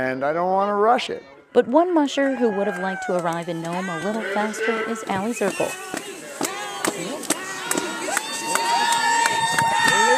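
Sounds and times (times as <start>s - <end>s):
speech: 0.0s - 6.0s
large crowd cheering at race finish: 2.2s - 10.1s.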